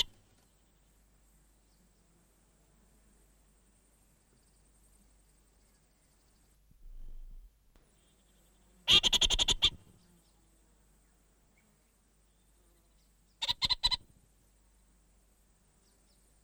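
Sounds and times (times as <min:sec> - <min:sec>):
orange-fronted parakeet giving harsh rapid chattering bursts: 0:08.9 - 0:09.8, 0:13.4 - 0:14.0.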